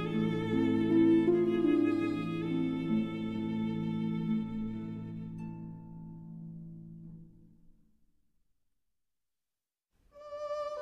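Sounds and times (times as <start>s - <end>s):
berceuse for violin and harp: 0.0s - 6.4s, 10.2s - 10.7s.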